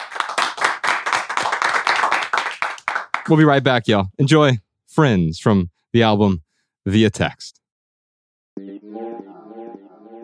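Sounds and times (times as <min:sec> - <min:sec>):
audience round of applause: 0:00.0 - 0:03.4
speech: 0:03.3 - 0:07.6.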